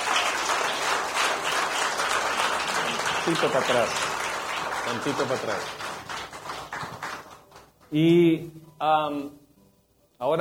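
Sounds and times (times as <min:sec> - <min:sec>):
audience applause: 0:00.0 - 0:07.7
speech: 0:03.3 - 0:04.1, 0:04.9 - 0:05.8, 0:07.9 - 0:09.4, 0:10.2 - 0:10.4.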